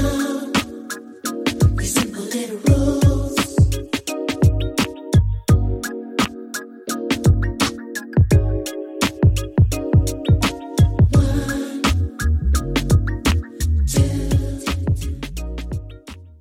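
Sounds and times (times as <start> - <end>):
backing vocals: 0.0 - 0.9, 1.8 - 3.8, 11.1 - 12.1, 13.9 - 15.4
instrumental music: 0.0 - 16.3.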